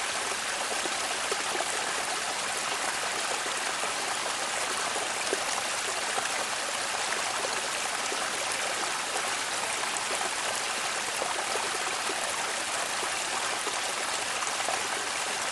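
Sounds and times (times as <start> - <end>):
close summer mountain stream at medium altitude: 0.0 - 15.5.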